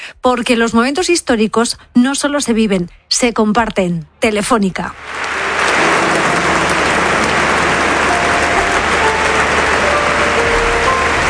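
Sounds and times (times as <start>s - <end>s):
speech: 0.1s - 5.4s
applause in the church of San Agustín in Barcelona: 5.0s - 11.2s.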